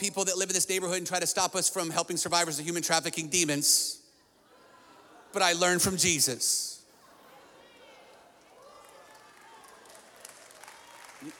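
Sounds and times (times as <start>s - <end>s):
speech: 0.0s - 4.0s, 5.3s - 6.7s
audience clapping: 8.1s - 11.3s.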